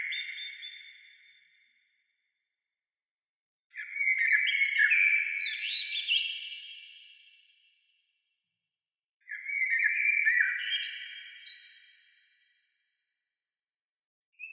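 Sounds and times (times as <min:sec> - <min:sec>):
bird singing twittering phrases: 0:00.0 - 0:01.5, 0:03.8 - 0:06.7, 0:09.3 - 0:12.0.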